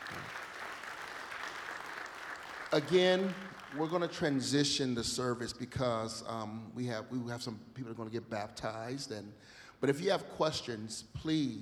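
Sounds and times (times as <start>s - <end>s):
audience applause: 0.0s - 4.3s
speech: 2.7s - 11.5s.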